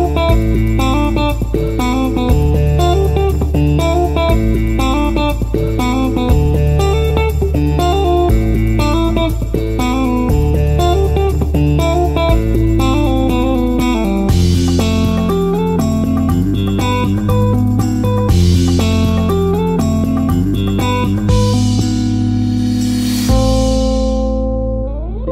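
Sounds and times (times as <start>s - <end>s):
disco dance music with bass: 0.0s - 25.2s.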